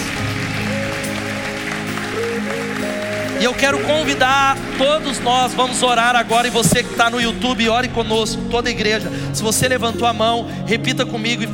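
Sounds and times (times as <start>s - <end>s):
audience applause: 0.0s - 7.7s
sustained keyboard chords and a melody: 0.0s - 11.5s
speech: 3.4s - 11.5s.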